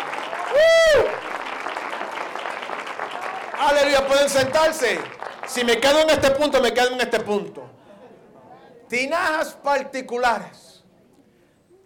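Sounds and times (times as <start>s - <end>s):
audience applause of praise: 0.0s - 6.1s
speech: 0.6s - 1.1s, 3.8s - 7.8s, 8.9s - 10.6s.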